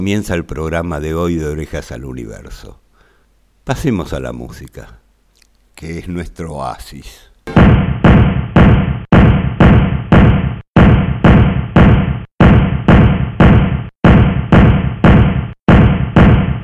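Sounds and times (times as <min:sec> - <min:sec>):
speech: 0:00.0 - 0:02.8, 0:03.7 - 0:05.0, 0:05.8 - 0:07.8
hammer striking: 0:07.5 - 0:16.6.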